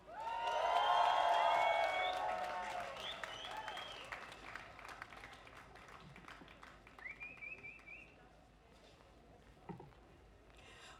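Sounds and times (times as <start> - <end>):
applause and cheering at a street rally against fascism: 0.0 - 7.9.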